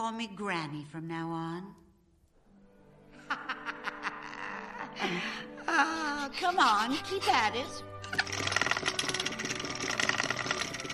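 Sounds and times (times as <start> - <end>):
speech: 0.1 - 1.8, 5.0 - 8.4
laughter: 3.2 - 7.5
fast regular clacking: 8.0 - 10.9
thread being spun: 8.0 - 10.9.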